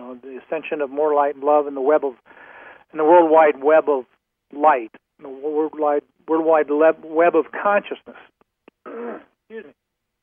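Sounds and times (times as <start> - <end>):
speech: 0.2 - 8.3, 9.0 - 9.8
person with a sore throat clearing it: 8.8 - 9.4.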